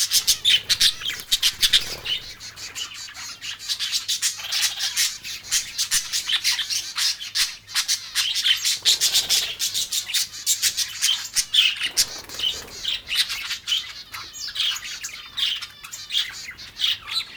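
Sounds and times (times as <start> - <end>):
exotic birds squawking harshly: 0.0 - 17.3.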